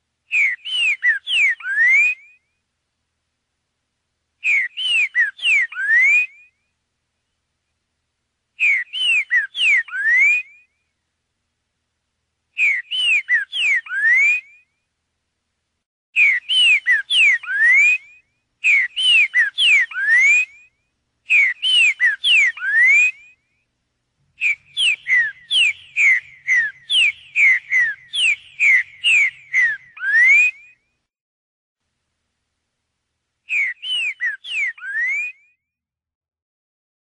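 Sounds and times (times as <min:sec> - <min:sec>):
green-winged saltator song: 0:00.3 - 0:02.6, 0:04.4 - 0:06.8, 0:08.6 - 0:11.0, 0:12.5 - 0:14.8, 0:16.2 - 0:23.7, 0:24.3 - 0:31.0, 0:33.4 - 0:35.8.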